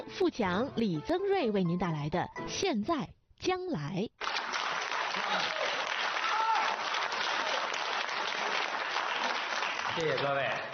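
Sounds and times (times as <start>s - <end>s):
speech: 0.1s - 4.3s, 10.0s - 10.7s
enthusiastic audience applause: 4.2s - 10.7s.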